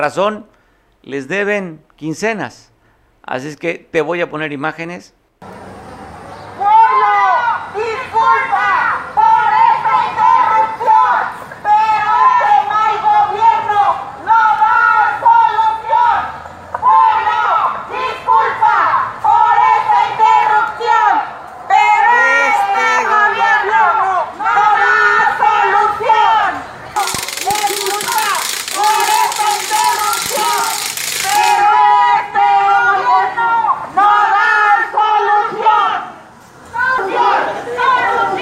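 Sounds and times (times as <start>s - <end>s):
speech: 0.0s - 5.6s
large crowd of protesters shouting and chanting at a demonstration: 6.5s - 38.4s.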